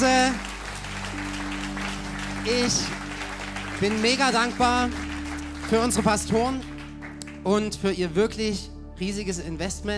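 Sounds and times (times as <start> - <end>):
audience applause: 0.0 - 7.4
speech: 2.4 - 3.0, 3.8 - 5.0, 5.6 - 6.7, 7.4 - 9.9.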